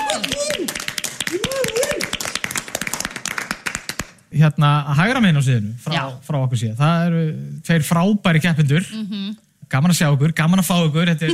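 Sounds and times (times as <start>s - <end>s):
audience clapping at a lively show with contestants: 0.0s - 4.3s
speech: 4.4s - 11.3s.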